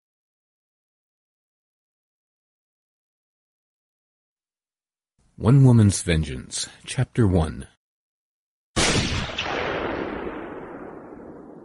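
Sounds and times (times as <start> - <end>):
speech: 5.4 - 7.8
gunshot echoing across a valley: 8.8 - 11.6.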